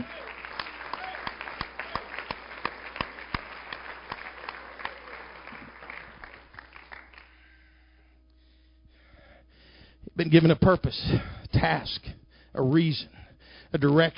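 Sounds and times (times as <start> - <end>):
audience hand clapping: 0.0 - 7.4
speech: 10.2 - 14.1.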